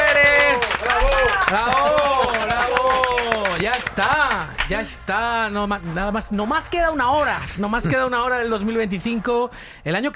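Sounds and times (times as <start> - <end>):
audience applause: 0.0 - 5.0
speech: 1.5 - 2.0, 3.7 - 10.1.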